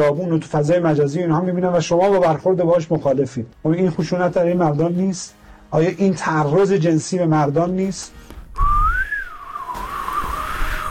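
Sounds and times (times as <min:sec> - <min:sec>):
speech: 0:00.0 - 0:08.4
person whistling a wavering tune: 0:08.6 - 0:10.8.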